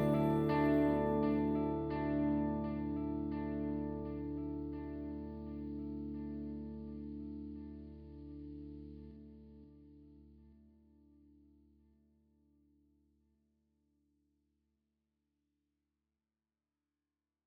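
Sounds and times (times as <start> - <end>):
dreamy guitar loop: 0.0 - 9.8.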